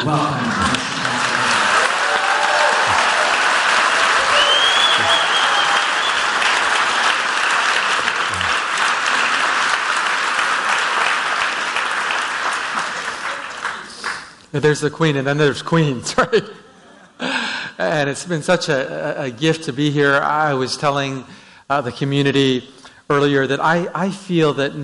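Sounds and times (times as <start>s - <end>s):
speech: 0.0s - 0.5s, 14.6s - 16.6s, 17.8s - 24.8s
church congregation applauding to welcome a guest: 0.0s - 14.4s
laughter: 2.6s - 7.1s, 7.8s - 9.7s.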